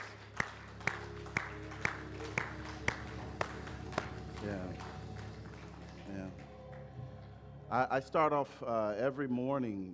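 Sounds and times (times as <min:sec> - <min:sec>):
audience clapping: 0:00.0 - 0:07.4
speech: 0:07.7 - 0:09.9.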